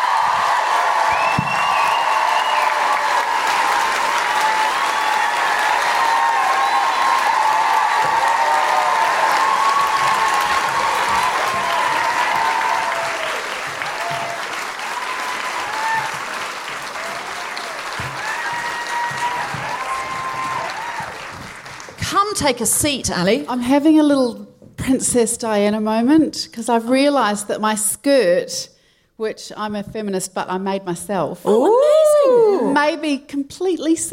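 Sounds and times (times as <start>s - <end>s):
audience whoops: 0.0s - 16.3s, 16.9s - 21.4s, 31.5s - 32.8s
live comedy show audience clapping in Auckland: 0.0s - 22.3s
speech: 22.4s - 34.1s.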